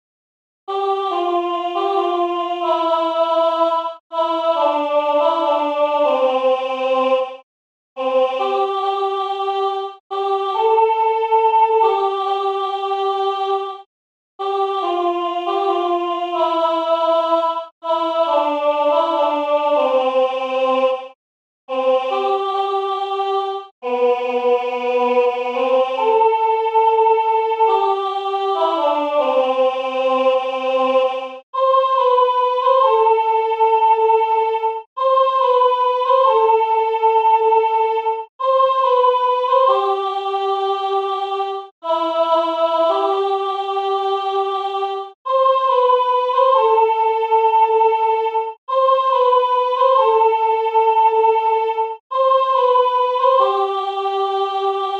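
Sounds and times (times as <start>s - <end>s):
solo chanting: 0.7s - 7.4s, 8.0s - 54.9s.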